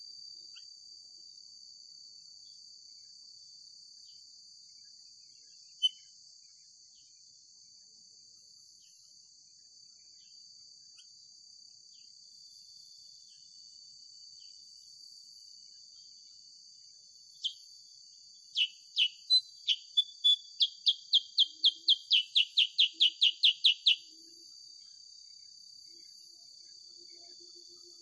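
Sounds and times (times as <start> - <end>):
sooty-headed bulbul song of sharp downslurred chirps: 5.8 - 6.0, 17.4 - 17.7, 18.5 - 24.4, 27.1 - 28.0.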